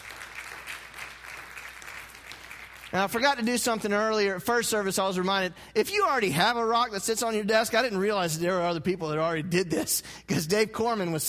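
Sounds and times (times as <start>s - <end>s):
audience applause at a church service: 0.0s - 3.2s
speech: 2.9s - 11.2s.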